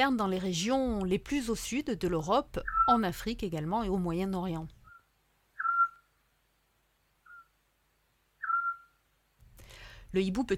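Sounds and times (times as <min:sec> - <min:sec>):
speech: 0:00.0 - 0:04.8, 0:10.1 - 0:10.5
Eurasian scops owl whistling call: 0:02.7 - 0:03.0, 0:04.8 - 0:06.1, 0:07.2 - 0:07.6, 0:08.4 - 0:09.0.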